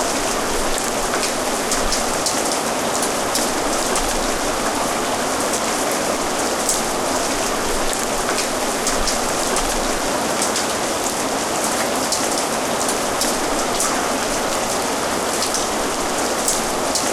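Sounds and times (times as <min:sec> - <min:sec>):
rain: 0:00.0 - 0:17.1.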